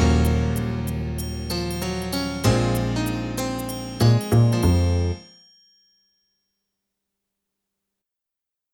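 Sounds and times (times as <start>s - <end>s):
contemporary R&B backing track: 0.0s - 5.2s.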